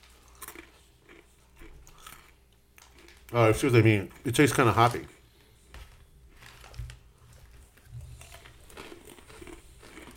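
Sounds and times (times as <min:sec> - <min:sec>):
crunchy chewing of a snack and nut mix with little pretzels: 0:00.0 - 0:03.4, 0:04.1 - 0:10.1
speech: 0:03.3 - 0:05.2.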